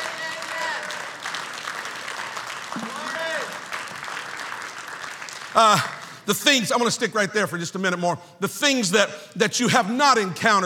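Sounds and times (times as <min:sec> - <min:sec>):
audience clapping hands: 0:00.0 - 0:06.6
speech: 0:05.6 - 0:10.6.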